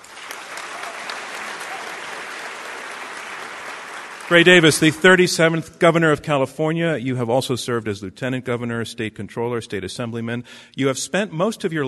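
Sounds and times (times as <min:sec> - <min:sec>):
audience applause at a live debate: 0:00.0 - 0:05.2
speech: 0:04.3 - 0:11.8.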